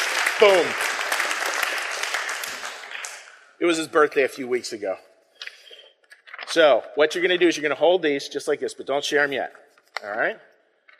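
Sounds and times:
crowd applauding: 0:00.0 - 0:03.5
speech: 0:00.4 - 0:00.9, 0:03.6 - 0:05.1, 0:06.5 - 0:10.5.

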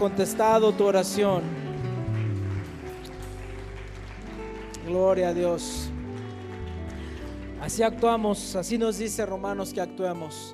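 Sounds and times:
speech: 0:00.0 - 0:01.6, 0:04.9 - 0:06.0, 0:07.6 - 0:10.5
audience applause: 0:00.0 - 0:08.4.

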